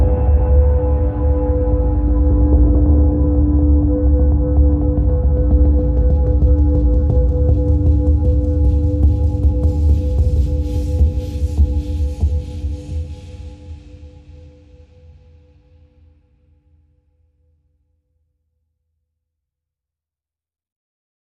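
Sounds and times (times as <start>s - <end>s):
percussion: 0.0s - 16.0s.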